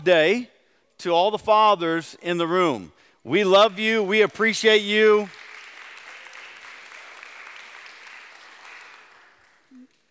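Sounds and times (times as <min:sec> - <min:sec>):
speech: 0:00.0 - 0:05.4
crowd clapping: 0:03.6 - 0:10.0.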